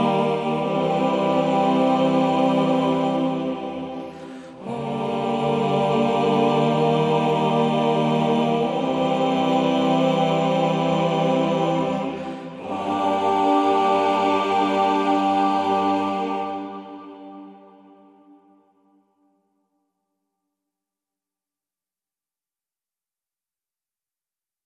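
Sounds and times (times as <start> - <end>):
choir stem: 0.0 - 19.0.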